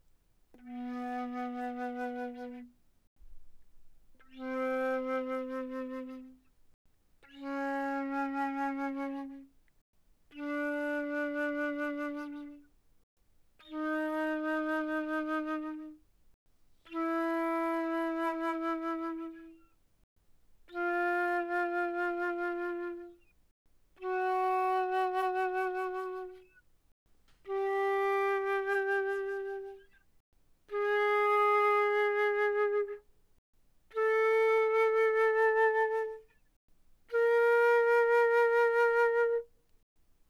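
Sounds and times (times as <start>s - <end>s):
flute vibrato mezzo forte B3 to B4: 0.5s - 2.7s, 4.2s - 6.4s, 7.2s - 9.5s, 10.3s - 12.6s, 13.6s - 16.0s, 16.9s - 19.6s, 20.7s - 23.3s, 24.0s - 26.6s, 27.5s - 29.9s, 30.7s - 33.0s, 34.0s - 36.3s, 37.1s - 39.5s.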